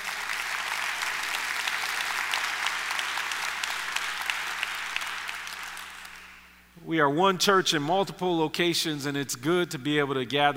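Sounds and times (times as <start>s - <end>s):
audience applauding: 0.0s - 6.5s
speech: 6.9s - 10.5s.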